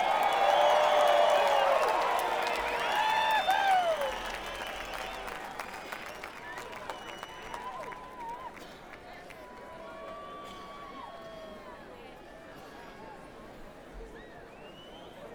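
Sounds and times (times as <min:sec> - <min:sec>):
audience applause: 0:00.0 - 0:10.3.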